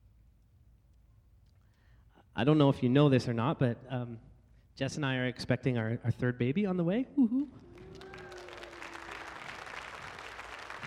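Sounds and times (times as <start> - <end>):
speech: 2.4 - 7.7
audience clapping: 7.6 - 10.8.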